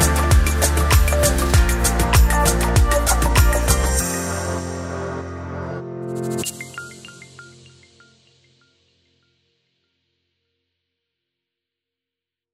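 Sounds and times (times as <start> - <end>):
inspiring motivational uplifting music: 0.0 - 8.5.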